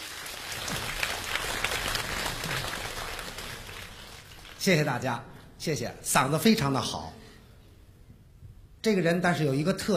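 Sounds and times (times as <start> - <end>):
audience applause at a Beijing comedy crosstalk show: 0.0 - 4.6
speech: 4.6 - 7.2, 8.8 - 9.9.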